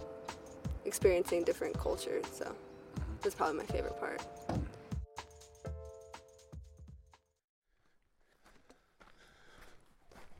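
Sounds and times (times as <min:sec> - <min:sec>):
speech: 0:00.9 - 0:04.6
footsteps of a hiker walking a trail: 0:07.7 - 0:10.3.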